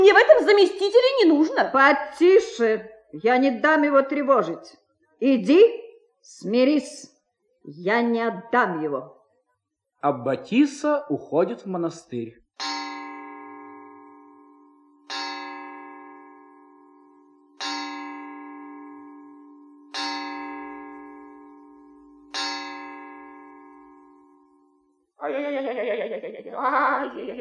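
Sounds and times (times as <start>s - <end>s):
speech: 0.1s - 9.2s, 10.0s - 12.8s, 26.2s - 27.4s
clock striking five: 12.6s - 24.8s.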